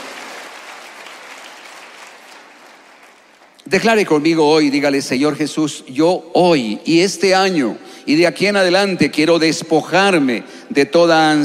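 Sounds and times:
audience clapping: 0.0s - 4.2s
speech: 3.6s - 11.4s.

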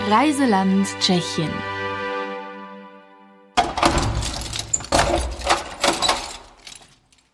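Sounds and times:
speech: 0.1s - 1.7s
church door being unlocked: 3.6s - 7.3s
keys jangling: 3.8s - 7.3s.

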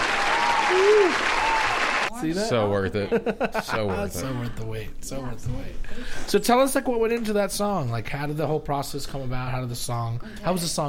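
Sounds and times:
applause button sound effect: 0.0s - 2.1s
speech: 2.2s - 10.8s
laughter: 3.0s - 4.5s.

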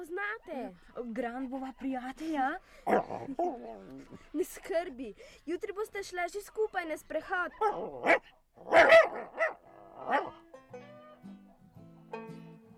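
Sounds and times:
speech: 0.3s - 10.4s
dog barking: 7.6s - 10.4s.

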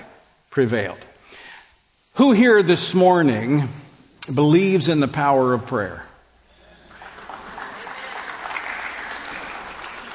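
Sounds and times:
speech: 0.5s - 1.1s, 2.2s - 6.1s
crowd applause: 6.7s - 10.1s.

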